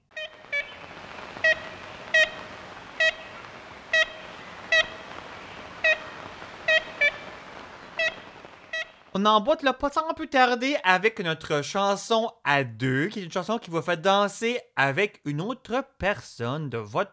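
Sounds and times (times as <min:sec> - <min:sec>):
faint hiss: 0:00.0 - 0:17.1
ivory-billed woodpecker toy-horn-like toots: 0:00.2 - 0:09.2
speech: 0:09.2 - 0:17.1.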